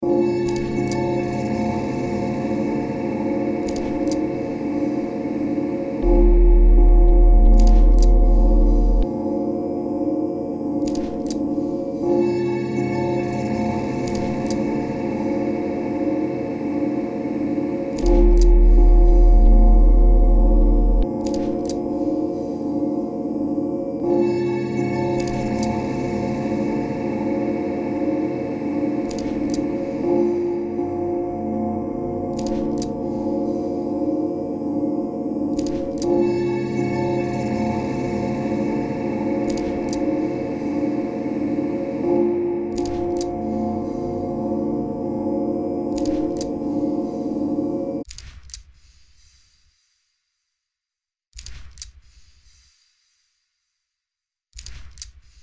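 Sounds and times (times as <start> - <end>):
bells: 0.0 - 10.8, 11.4 - 21.2, 21.8 - 48.0
didgeridoo: 6.0 - 9.1, 18.1 - 21.1.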